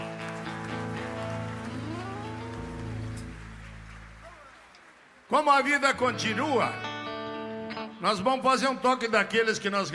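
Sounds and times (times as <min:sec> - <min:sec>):
round of applause: 0:00.0 - 0:06.3
speech: 0:05.3 - 0:06.8, 0:08.0 - 0:09.9.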